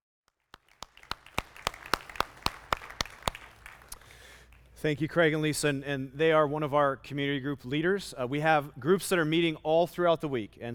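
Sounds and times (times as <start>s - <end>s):
church gathering audience clapping: 0.3s - 4.8s
speech: 4.8s - 10.7s.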